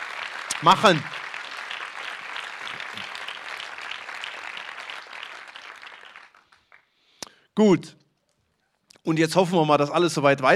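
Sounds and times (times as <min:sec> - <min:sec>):
audience applause: 0:00.0 - 0:06.9
speech: 0:00.6 - 0:01.2, 0:07.6 - 0:08.0, 0:09.0 - 0:10.5.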